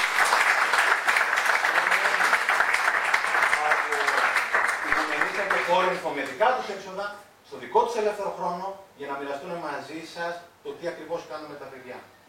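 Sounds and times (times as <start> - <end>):
audience applause: 0.0 - 6.0
speech: 5.7 - 12.2.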